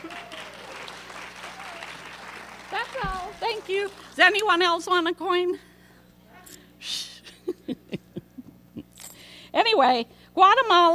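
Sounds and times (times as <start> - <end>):
children clapping: 0.0 - 4.2
speech: 3.0 - 5.7, 9.6 - 10.9.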